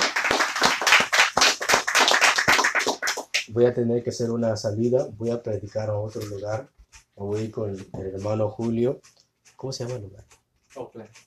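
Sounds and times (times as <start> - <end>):
group clapping in a fast steady rhythm: 0.0 - 3.5
speech: 3.6 - 11.2.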